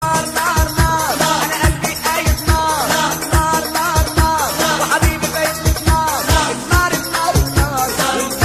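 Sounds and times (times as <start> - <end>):
Arabic Egyptian song: 0.0 - 8.4.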